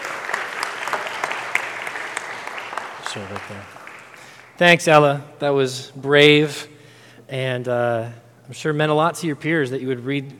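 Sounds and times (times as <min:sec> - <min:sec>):
applause from a group: 0:00.0 - 0:05.0
speech: 0:03.1 - 0:03.8, 0:04.6 - 0:06.7, 0:07.3 - 0:10.3.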